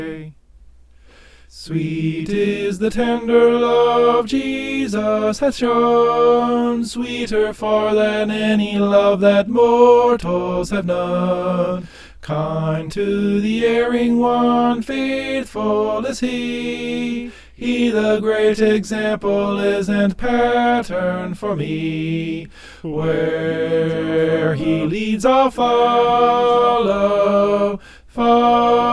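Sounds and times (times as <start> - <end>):
soprano singing: 1.7 - 28.9.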